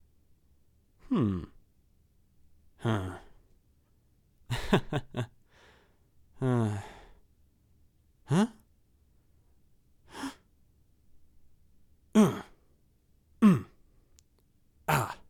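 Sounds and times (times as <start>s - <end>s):
man grunting: 1.0s - 1.6s, 2.8s - 3.3s, 6.4s - 7.0s, 8.3s - 8.6s, 12.2s - 12.6s, 13.4s - 13.8s, 14.9s - 15.2s.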